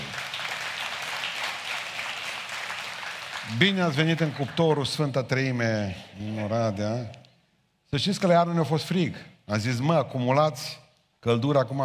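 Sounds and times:
audience applauding: 0.0 - 5.2
speech: 3.5 - 7.2, 7.9 - 11.8.

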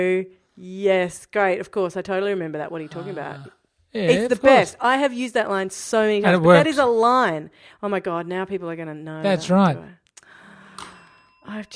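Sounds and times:
speech: 0.0 - 10.0, 11.4 - 11.7
pen dropping on a bell: 10.8 - 11.6.

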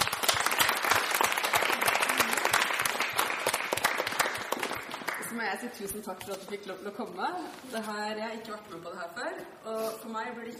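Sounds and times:
audience applause: 0.0 - 5.3
speech: 5.5 - 10.5.

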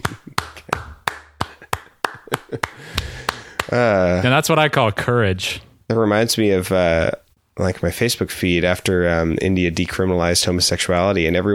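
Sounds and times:
applause: 0.0 - 3.8
speech: 3.7 - 11.5.

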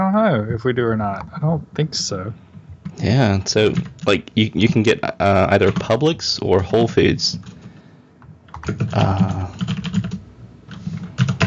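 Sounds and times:
speech: 0.2 - 7.6, 8.7 - 9.8
typing on a computer keyboard: 3.6 - 4.1, 5.6 - 6.0, 6.7 - 7.8, 8.5 - 11.4.

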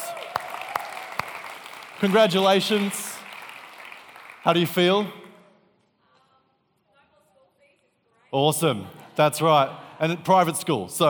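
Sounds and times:
audience applause: 0.0 - 5.3
speech: 2.0 - 3.1, 4.4 - 5.2, 8.3 - 11.0.

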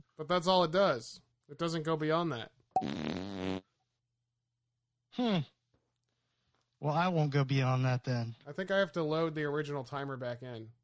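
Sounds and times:
speech: 0.2 - 3.2, 5.2 - 5.6, 6.8 - 10.8
loud buzzy fart noises: 2.8 - 3.8.

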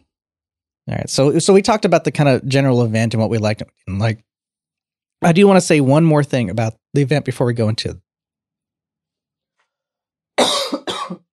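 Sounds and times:
speech: 0.9 - 4.3, 5.2 - 8.0
coughing fit from choking: 10.4 - 11.3.

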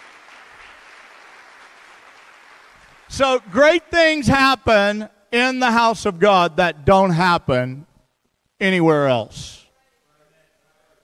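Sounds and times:
audience clapping: 0.0 - 3.6
speech: 3.1 - 7.9, 8.6 - 9.6.

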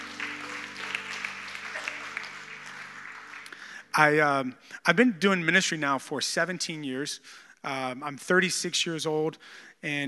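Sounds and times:
people clapping: 0.0 - 4.3
speech: 4.0 - 10.0.

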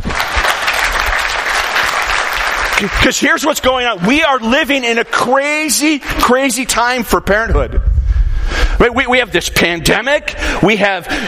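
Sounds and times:
audience applause: 0.0 - 3.8
speech: 2.8 - 8.0, 8.8 - 11.2.

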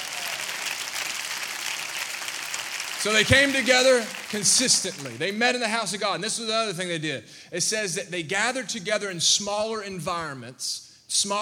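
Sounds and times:
audience clapping hands: 0.0 - 5.4
speech: 3.0 - 11.3.

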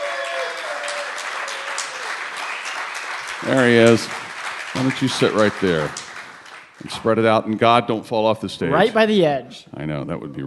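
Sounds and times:
audience applause: 0.0 - 7.3
speech: 3.4 - 4.2, 4.8 - 6.0, 6.8 - 10.4.

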